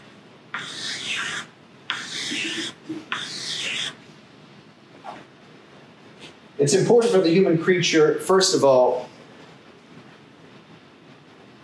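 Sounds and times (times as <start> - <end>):
marker or chalk drawing strokes on a board: 0.6 - 4.0
speech: 6.6 - 9.1.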